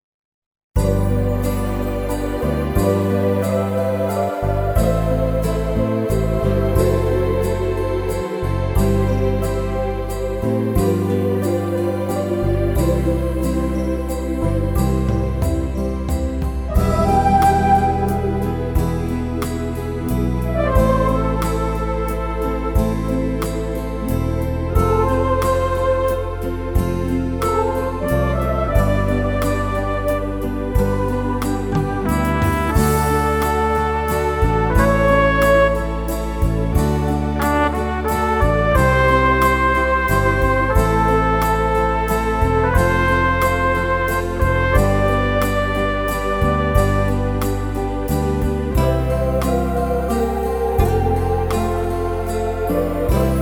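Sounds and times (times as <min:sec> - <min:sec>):
festive waltz: 0:00.8 - 0:53.4.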